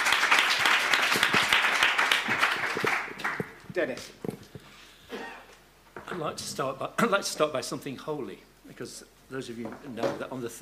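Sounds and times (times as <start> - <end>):
audience applause: 0.0 - 3.6
speech: 3.8 - 4.3, 6.2 - 10.5.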